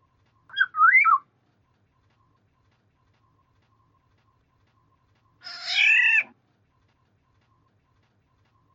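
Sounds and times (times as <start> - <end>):
black-naped oriole fluty whistled phrases: 0.5 - 1.2.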